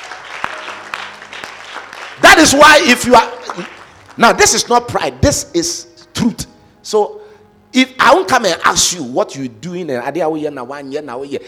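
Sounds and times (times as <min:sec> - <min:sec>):
audience clapping: 0:00.0 - 0:04.6
speech: 0:02.2 - 0:11.4.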